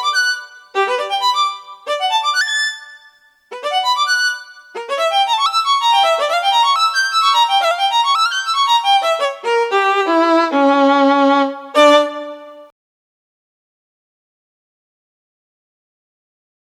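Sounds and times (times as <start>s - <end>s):
violin vibrato: 0.0s - 12.7s.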